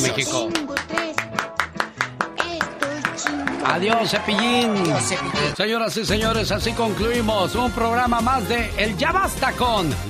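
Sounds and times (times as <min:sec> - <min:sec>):
speech: 0:00.1 - 0:00.9, 0:03.7 - 0:10.0
rhythmic applause in tribute: 0:00.3 - 0:07.7.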